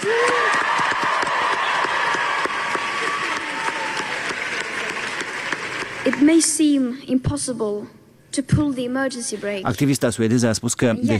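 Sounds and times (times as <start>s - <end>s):
faint cheers and whistles: 0.0s - 5.6s
crowd of students applauding: 0.0s - 6.5s
speech: 6.1s - 11.1s.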